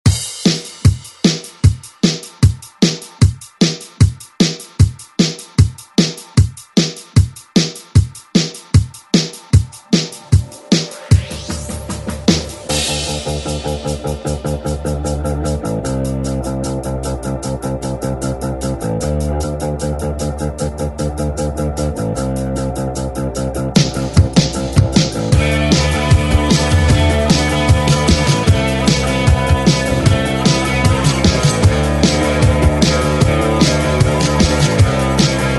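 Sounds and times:
eighties drum beat: 0.0s - 21.1s, 21.8s - 35.5s.

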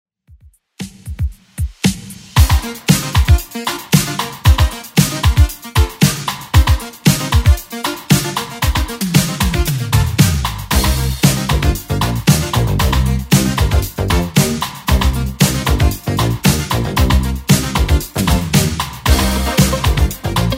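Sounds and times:
1980s style music at 115 bpm: 0.8s - 20.5s.

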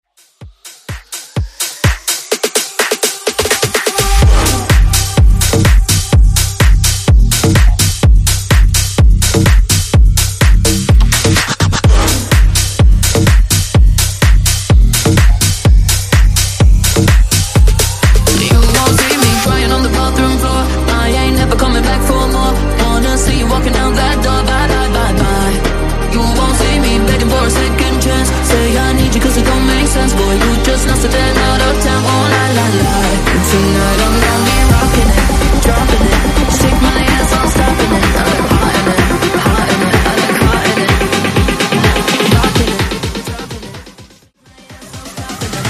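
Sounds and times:
Top40 bass house mashup: 0.0s - 45.6s.

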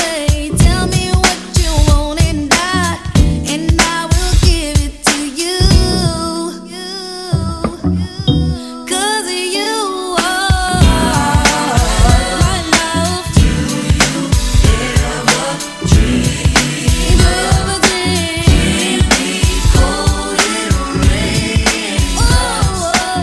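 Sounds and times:
1990s R and B music: 0.0s - 23.2s.

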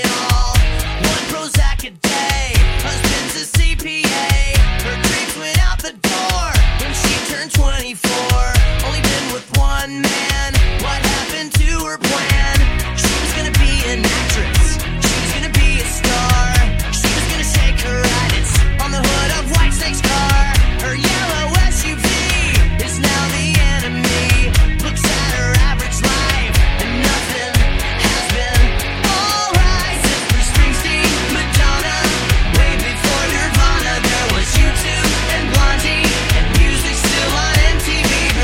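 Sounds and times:
rock music: 0.0s - 38.4s.

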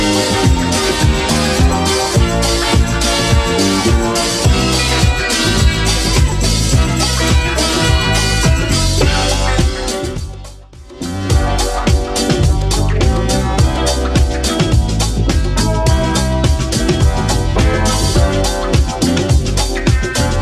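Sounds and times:
seventies-style drum loop: 0.0s - 20.4s.

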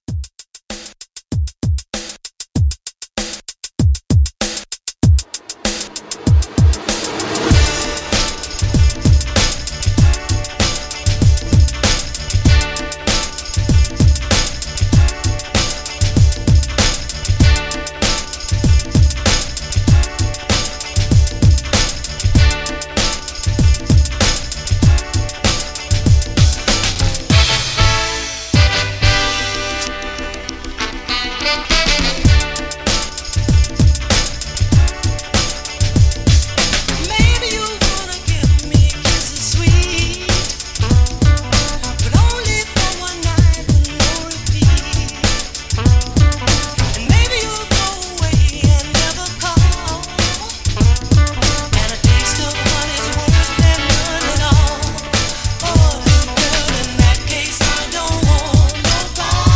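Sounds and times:
1960s soul drum beat: 0.0s - 59.5s.

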